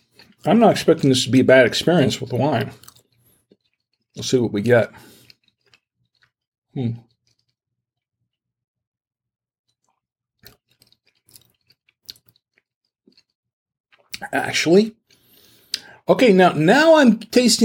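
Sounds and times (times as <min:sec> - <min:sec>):
chewing cheddar cheese with Parmesan: 0:00.0 - 0:07.7, 0:09.7 - 0:14.4
speech: 0:00.4 - 0:02.9, 0:04.2 - 0:05.1, 0:06.8 - 0:07.1, 0:14.2 - 0:15.0, 0:16.1 - 0:17.6.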